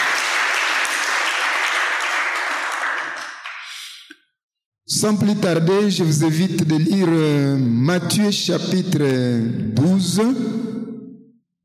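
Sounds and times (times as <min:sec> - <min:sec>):
audience applauding: 0:00.0 - 0:03.9
speech: 0:05.0 - 0:10.8.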